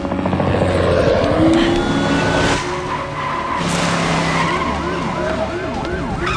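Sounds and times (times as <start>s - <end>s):
car engine roaring: 0.0s - 6.3s
warbling rising-and-falling siren-like tones: 0.0s - 6.3s
car tires skidding into a U-turn: 1.4s - 5.6s.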